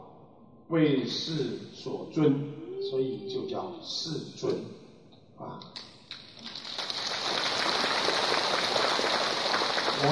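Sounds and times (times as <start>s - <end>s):
speech: 0.7s - 4.8s, 5.4s - 6.0s, 10.0s - 10.1s
audience applause: 6.4s - 10.1s.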